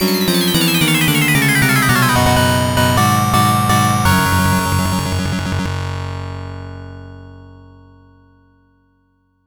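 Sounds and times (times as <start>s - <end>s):
arcade game over sound: 0.0s - 6.0s.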